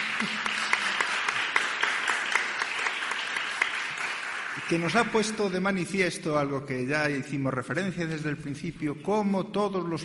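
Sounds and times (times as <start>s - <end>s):
audience applause: 0.0s - 5.4s
speech: 4.7s - 10.0s.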